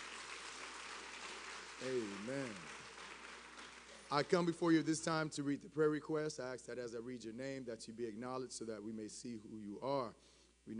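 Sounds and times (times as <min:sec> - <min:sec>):
audience applause: 0:00.0 - 0:04.5
speech: 0:01.8 - 0:02.8, 0:04.1 - 0:10.7.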